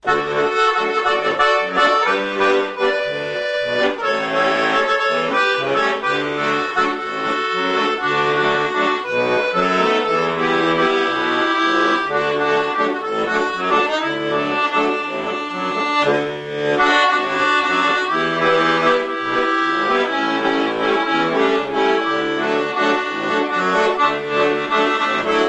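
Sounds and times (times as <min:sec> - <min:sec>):
accordion: 0:00.0 - 0:25.4.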